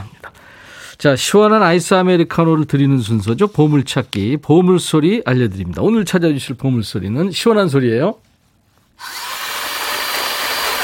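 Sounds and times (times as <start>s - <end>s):
speech: 1.0s - 8.3s
blender blending watermelon and fruit: 9.0s - 10.8s.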